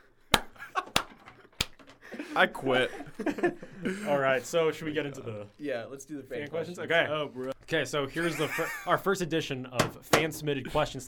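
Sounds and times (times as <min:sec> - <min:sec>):
thighs clapping into the microphone: 0:00.3 - 0:02.1
laughter: 0:02.0 - 0:04.2, 0:08.1 - 0:09.0
speech: 0:02.4 - 0:11.0.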